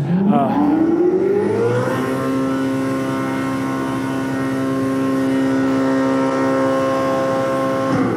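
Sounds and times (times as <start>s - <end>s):
Ferrari engine revving: 0.0s - 8.1s.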